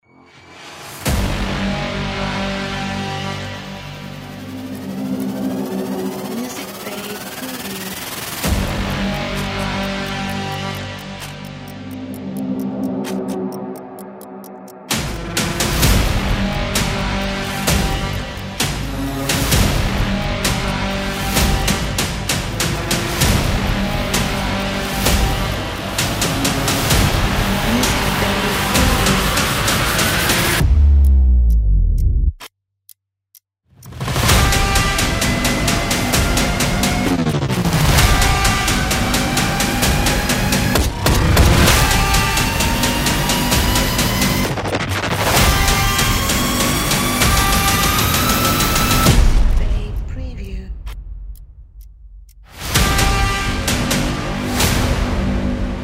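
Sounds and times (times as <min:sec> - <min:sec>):
aggressive hybrid trailer music: 0:00.2 - 0:32.3, 0:33.8 - 0:55.8.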